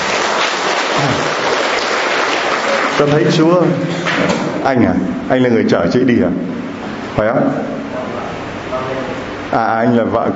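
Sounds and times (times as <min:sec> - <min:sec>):
audience applause: 0:00.0 - 0:03.5
speech: 0:03.0 - 0:06.6, 0:07.2 - 0:07.8, 0:09.5 - 0:10.3.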